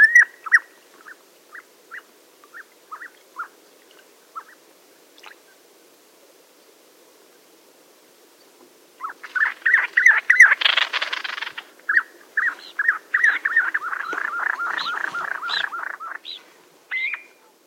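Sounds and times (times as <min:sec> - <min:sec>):
common ringed plover calls: 0:00.0 - 0:03.6, 0:04.3 - 0:04.6, 0:09.0 - 0:17.6.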